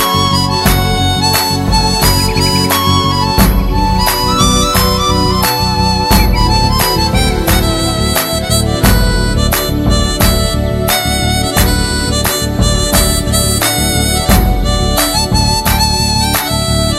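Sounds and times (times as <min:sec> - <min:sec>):
mouth horn ringtone: 0:00.0 - 0:16.9.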